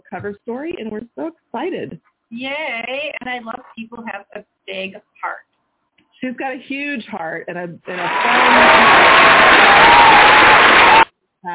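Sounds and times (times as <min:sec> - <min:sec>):
speech: 0:00.1 - 0:05.4, 0:06.2 - 0:11.5
applause: 0:08.0 - 0:11.1.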